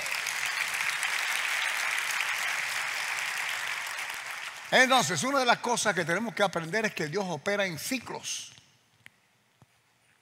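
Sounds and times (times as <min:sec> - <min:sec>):
audience applause: 0:00.0 - 0:05.5
speech: 0:04.7 - 0:08.6.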